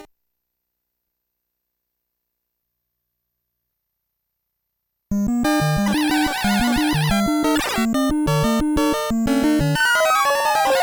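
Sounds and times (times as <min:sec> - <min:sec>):
Famicom main channels sound test: 0:05.1 - 0:10.7.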